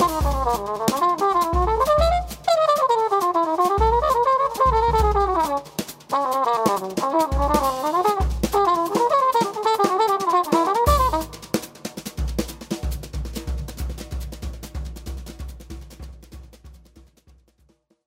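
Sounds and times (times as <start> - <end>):
blues music: 0.0 - 13.9.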